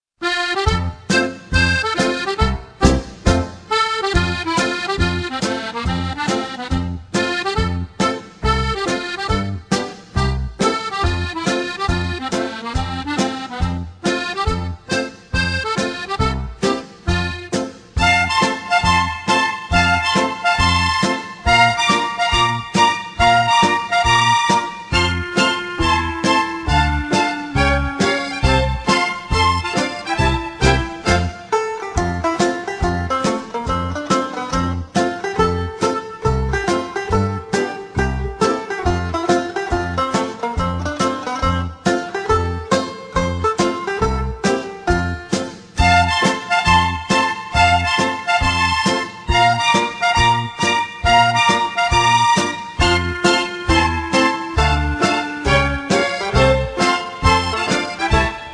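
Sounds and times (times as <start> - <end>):
background music: 0.2 - 58.5.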